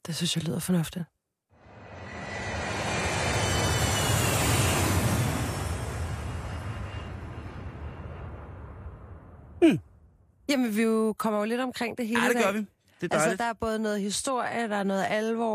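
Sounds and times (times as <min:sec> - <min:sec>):
speech: 0:00.1 - 0:01.2, 0:09.6 - 0:09.8, 0:10.5 - 0:15.5
airplane sound effect: 0:01.6 - 0:09.2.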